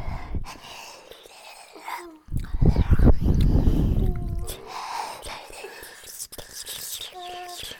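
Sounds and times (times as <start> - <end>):
ear licking sounds for women: 2.1 - 4.6.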